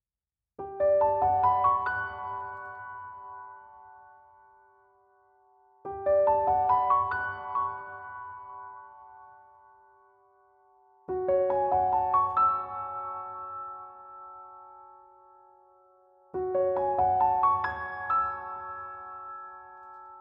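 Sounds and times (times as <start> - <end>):
piano: 0.6 - 20.1.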